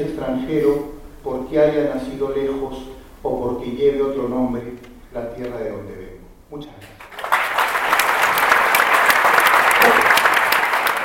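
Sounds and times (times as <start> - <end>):
speech: 0.0 - 7.0
audience applause after a speech: 7.0 - 11.0.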